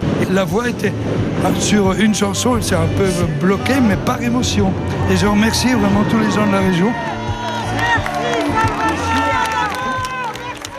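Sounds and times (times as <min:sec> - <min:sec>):
speech: 0:00.3 - 0:07.2
crowd cheering and calling out: 0:04.9 - 0:10.7
fans applauding after a concert: 0:05.5 - 0:10.7.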